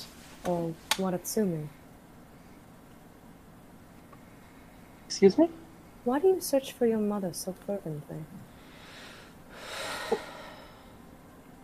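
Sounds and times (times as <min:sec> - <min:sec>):
speech: 0:00.4 - 0:01.8, 0:05.2 - 0:08.5
person gasping imitating a character's startled reaction: 0:08.7 - 0:11.0.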